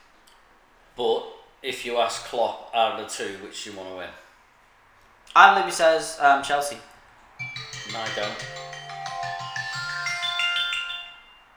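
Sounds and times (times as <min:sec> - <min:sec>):
speech: 0:01.0 - 0:04.2, 0:05.3 - 0:06.9, 0:07.9 - 0:08.6
timer alarm going off: 0:07.4 - 0:11.5.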